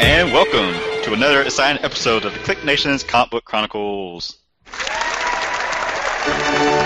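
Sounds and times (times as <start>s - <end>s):
speech: 0.2s - 4.4s
applause sound effect: 4.7s - 6.8s.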